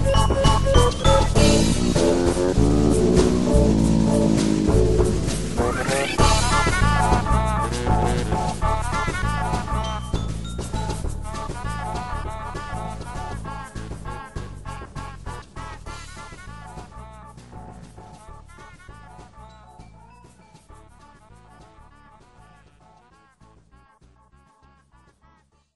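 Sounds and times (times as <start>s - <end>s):
fight music: 0.0s - 14.3s.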